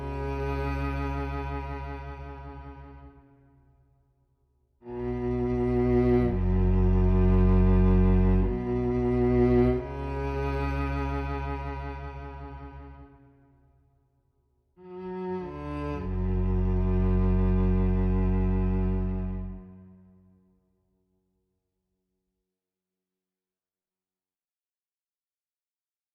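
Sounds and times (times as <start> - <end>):
solo cello playing: 0.0 - 3.1, 4.8 - 13.1, 14.8 - 20.1.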